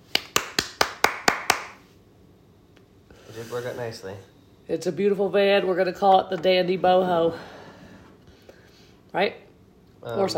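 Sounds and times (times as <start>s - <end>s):
hand claps: 0.0s - 1.9s
speech: 3.4s - 7.6s, 9.2s - 9.4s, 10.0s - 10.3s.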